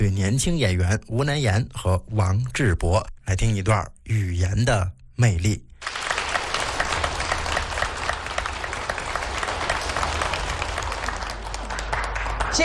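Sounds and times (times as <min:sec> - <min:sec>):
speech: 0:00.0 - 0:05.7
audience applause: 0:05.8 - 0:12.6.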